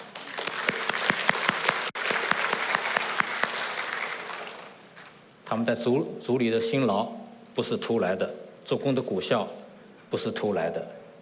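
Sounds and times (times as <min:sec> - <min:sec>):
audience applause: 0:00.0 - 0:04.8
speech: 0:05.5 - 0:11.0.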